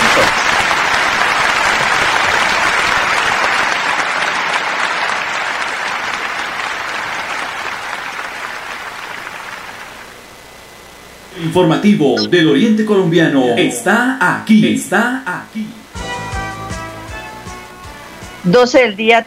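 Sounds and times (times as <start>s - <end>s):
crowd applause: 0.0s - 10.2s
speech: 11.6s - 15.8s, 18.4s - 19.2s.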